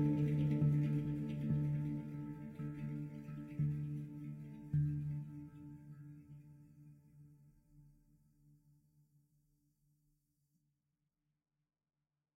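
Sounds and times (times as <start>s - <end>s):
handpan: 0.0s - 7.2s.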